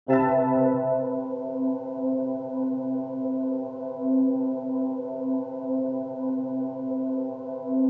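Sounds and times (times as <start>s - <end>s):
ambient music: 0.1s - 7.8s.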